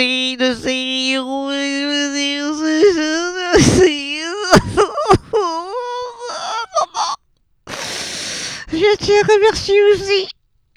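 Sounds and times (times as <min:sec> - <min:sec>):
speech: 0:00.0 - 0:01.5, 0:09.0 - 0:10.3
person crying and whimpering: 0:01.9 - 0:10.3.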